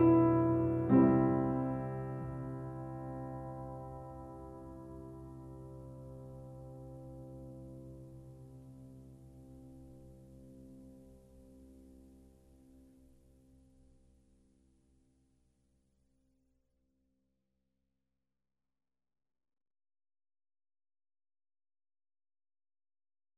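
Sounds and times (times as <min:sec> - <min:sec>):
piano: 0:00.0 - 0:14.0.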